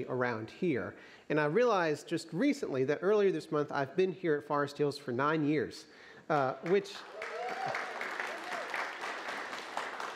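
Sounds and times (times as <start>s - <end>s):
speech: 0.0s - 7.8s
audience applause: 6.6s - 10.1s.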